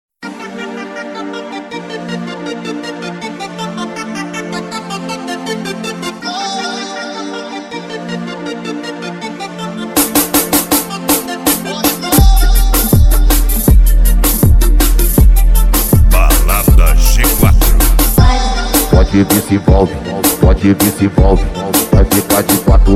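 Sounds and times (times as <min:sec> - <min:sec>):
electro funk car audio music: 0:11.2 - 0:22.9.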